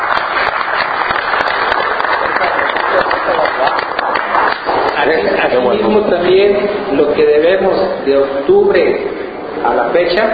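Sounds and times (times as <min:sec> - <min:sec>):
audience applause: 0:00.0 - 0:05.6
speech: 0:05.1 - 0:10.3.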